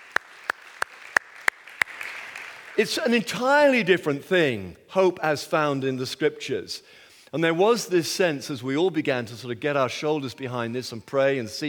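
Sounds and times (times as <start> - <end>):
audience clapping in unison: 0.0 - 3.3
speech: 2.8 - 11.6.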